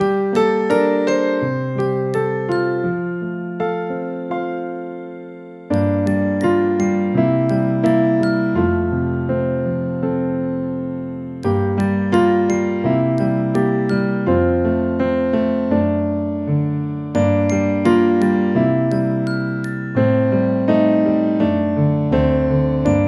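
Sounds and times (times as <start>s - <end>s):
instrumental music: 0.0s - 23.0s.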